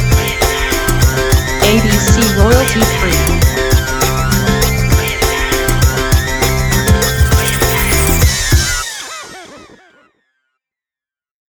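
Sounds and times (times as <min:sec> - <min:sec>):
happy piano music: 0:00.0 - 0:09.0.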